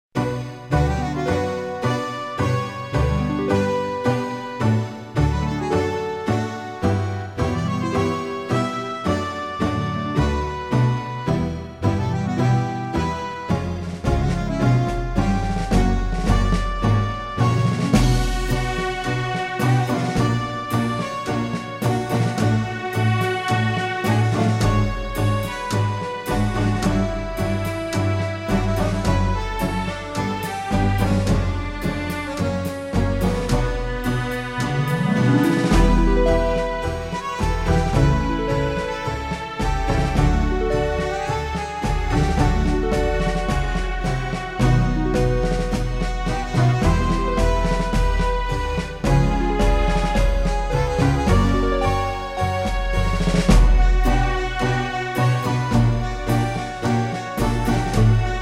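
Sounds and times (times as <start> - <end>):
tango music: 0.1 - 58.4.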